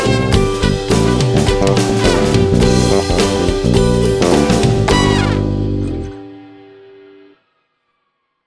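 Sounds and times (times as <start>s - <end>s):
12-bar blues: 0.0s - 6.5s.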